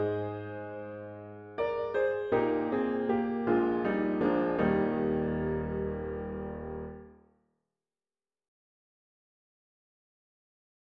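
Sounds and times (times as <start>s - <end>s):
enhanced piano: 0.0s - 7.2s.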